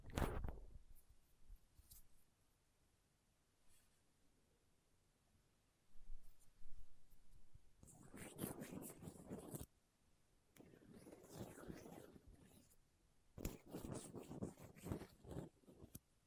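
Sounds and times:
microphone picked and scraped with small tools: 0.0 - 0.6, 7.8 - 9.7, 10.6 - 12.7, 13.4 - 15.9.

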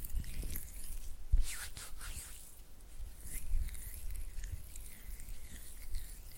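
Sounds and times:
oily hand sounds: 0.1 - 6.3
flutter finger sounds: 1.3 - 2.5.

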